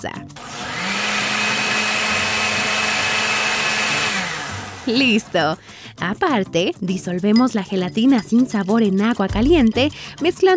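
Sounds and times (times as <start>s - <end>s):
speech: 0.0s - 0.5s, 4.8s - 10.5s
blender blending mixture at high speed: 0.4s - 4.8s.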